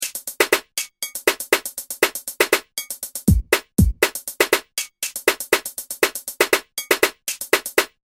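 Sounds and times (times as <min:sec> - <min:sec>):
music beat: 0:00.0 - 0:08.0.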